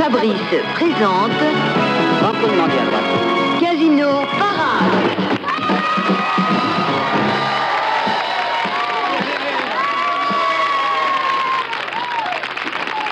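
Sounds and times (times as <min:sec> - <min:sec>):
speech: 0:00.1 - 0:05.4
crowd clapping for a performer's double somersault: 0:04.8 - 0:13.0.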